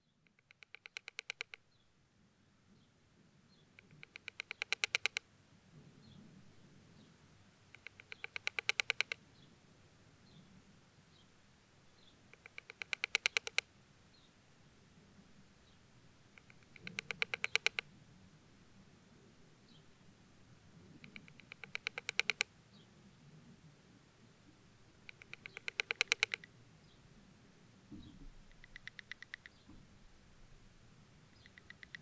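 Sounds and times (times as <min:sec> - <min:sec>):
deathwatch beetle: 0:04.0 - 0:05.2, 0:07.8 - 0:09.2, 0:12.4 - 0:13.6, 0:16.4 - 0:17.8, 0:21.0 - 0:22.5, 0:25.1 - 0:26.5, 0:28.5 - 0:29.6, 0:31.4 - 0:32.0.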